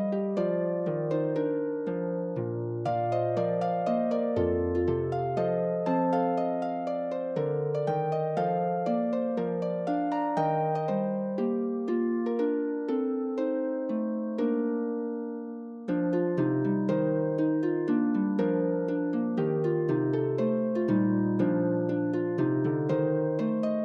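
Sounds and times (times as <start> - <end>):
harp waltz: 0.0 - 23.8.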